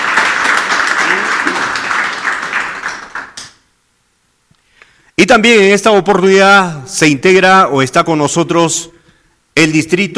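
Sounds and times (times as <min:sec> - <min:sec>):
audience applause: 0:00.0 - 0:03.6
speech: 0:05.2 - 0:09.0, 0:09.6 - 0:10.1.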